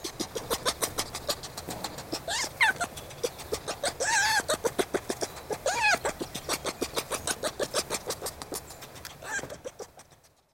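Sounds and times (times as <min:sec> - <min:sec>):
red fox chattering: 0:00.0 - 0:10.5
red fox wailing cries: 0:02.1 - 0:04.9, 0:05.5 - 0:06.3, 0:09.2 - 0:09.8.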